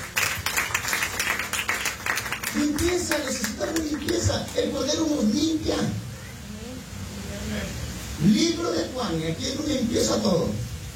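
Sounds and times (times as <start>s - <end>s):
audience clapping hands: 0.0s - 4.7s
speech: 2.5s - 6.0s, 8.2s - 10.7s.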